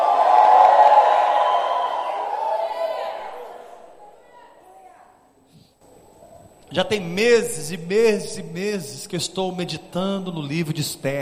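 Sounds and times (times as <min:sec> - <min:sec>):
audience shouting a cry of victory: 0:00.0 - 0:03.9
speech: 0:06.8 - 0:11.2.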